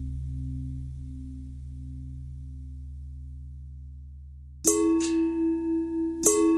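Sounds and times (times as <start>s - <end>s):
long bell ringing: 4.7s - 6.5s.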